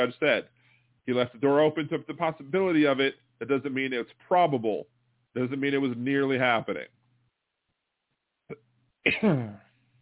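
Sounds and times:
speech: 0:00.0 - 0:07.0, 0:08.5 - 0:09.6
sneeze: 0:09.1 - 0:09.7.

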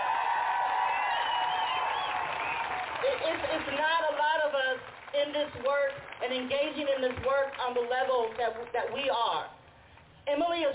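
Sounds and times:
faint whoops and cheers: 0:00.0 - 0:03.0
audience applause: 0:00.0 - 0:05.2
speech: 0:03.2 - 0:09.6, 0:10.3 - 0:10.7.

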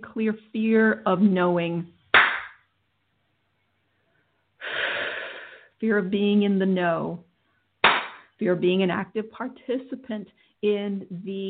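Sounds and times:
speech: 0:00.1 - 0:02.0, 0:05.8 - 0:07.3, 0:08.4 - 0:11.4
hand clapping: 0:02.2 - 0:02.6, 0:07.8 - 0:08.3.

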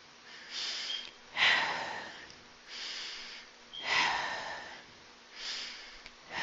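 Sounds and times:
slow deep breathing in and out: 0:00.2 - 0:06.4.

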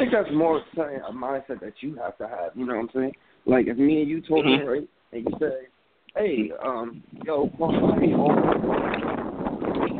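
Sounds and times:
speech: 0:00.1 - 0:09.9
strong wind buffeting a microphone: 0:05.2 - 0:05.6, 0:06.5 - 0:09.9.

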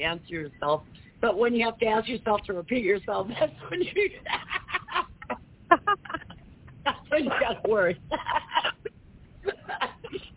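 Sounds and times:
speech: 0:00.0 - 0:04.5, 0:07.2 - 0:08.8
person laughing: 0:03.6 - 0:10.3.

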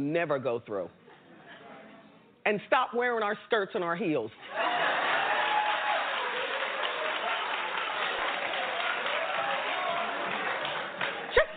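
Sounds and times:
speech: 0:00.0 - 0:01.0, 0:02.4 - 0:04.6
talk show audience applauding: 0:04.5 - 0:11.5.

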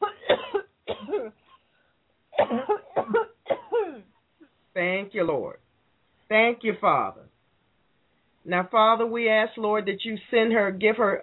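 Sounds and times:
woman coughing: 0:00.0 - 0:01.5, 0:02.4 - 0:04.1
speech: 0:04.8 - 0:05.6, 0:06.3 - 0:07.2, 0:08.4 - 0:11.2.

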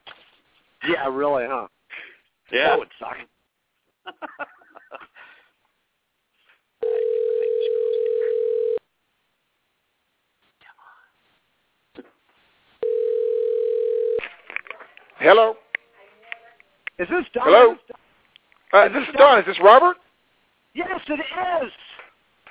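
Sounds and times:
speech: 0:00.8 - 0:01.8, 0:02.5 - 0:03.3, 0:04.0 - 0:04.6, 0:15.2 - 0:15.6, 0:17.0 - 0:18.0, 0:18.7 - 0:20.0, 0:20.8 - 0:21.8
telephone ring tones over the line: 0:06.8 - 0:08.8, 0:12.8 - 0:14.2.

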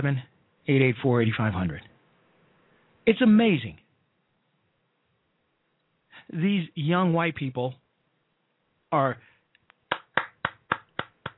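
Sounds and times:
speech: 0:00.0 - 0:01.9, 0:03.1 - 0:03.8, 0:06.3 - 0:07.8, 0:08.9 - 0:09.3
hand claps: 0:09.7 - 0:11.3.

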